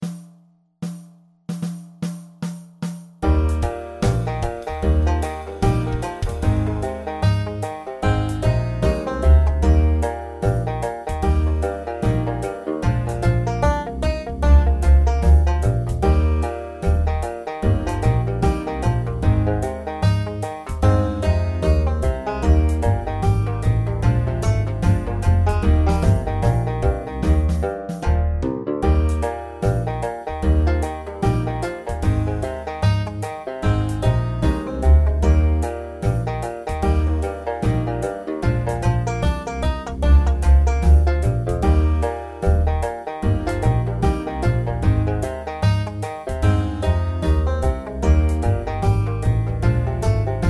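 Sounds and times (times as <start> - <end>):
tuba: 3.3 - 50.4.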